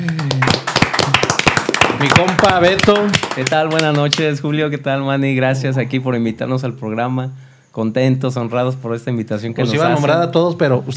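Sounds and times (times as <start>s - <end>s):
applause: 0.0s - 4.3s
speech: 2.0s - 10.9s.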